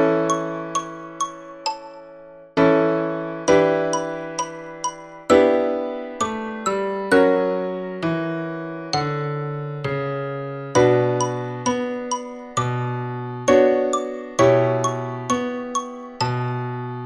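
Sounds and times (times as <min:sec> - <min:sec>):
xylophone: 0:00.0 - 0:02.5, 0:03.5 - 0:07.4, 0:10.8 - 0:16.8
piano: 0:00.0 - 0:17.0.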